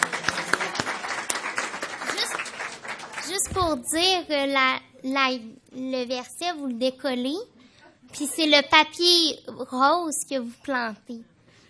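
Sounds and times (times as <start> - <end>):
audience applause for a presenter at a church gathering: 0.0 - 3.4
speech: 3.5 - 7.5, 8.1 - 11.3.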